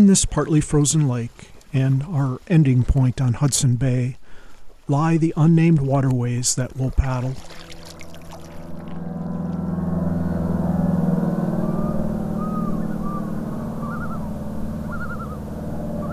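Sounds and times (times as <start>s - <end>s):
speech: 0.0s - 4.2s, 4.9s - 7.6s
faint wavering warbling calls: 6.9s - 16.1s
small plane engine droning: 7.1s - 16.1s.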